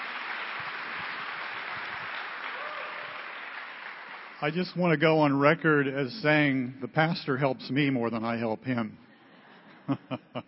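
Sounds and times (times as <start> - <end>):
round of applause: 0.0 - 5.0
speech: 4.4 - 9.0, 9.9 - 10.4
laughter: 9.5 - 10.4.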